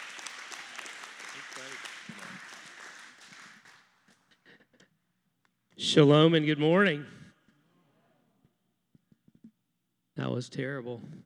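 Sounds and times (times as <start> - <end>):
audience clapping: 0.0 - 4.5
speech: 5.8 - 7.2, 10.4 - 11.2.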